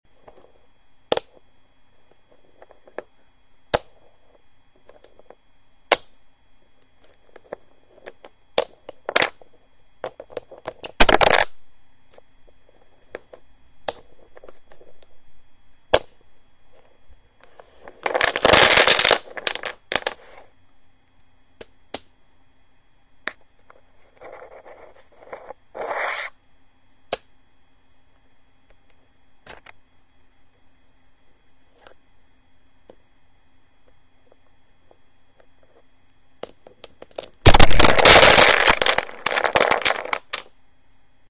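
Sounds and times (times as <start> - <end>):
jenga wooden blocks clacking: 1.1 - 1.4, 7.3 - 9.4, 10.0 - 11.5, 17.4 - 20.2, 36.4 - 40.5.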